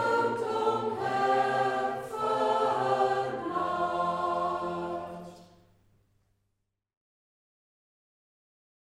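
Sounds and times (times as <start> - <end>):
choir singing: 0.0 - 5.7.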